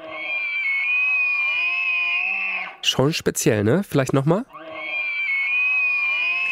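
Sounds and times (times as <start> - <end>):
moose calling: 0.0 - 2.9, 4.5 - 6.5
speech: 2.9 - 4.6.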